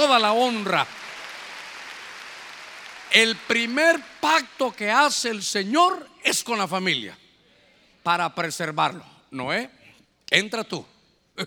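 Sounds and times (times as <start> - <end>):
speech: 0.0 - 1.0, 3.1 - 7.2, 8.0 - 11.4
audience clapping: 0.0 - 4.8.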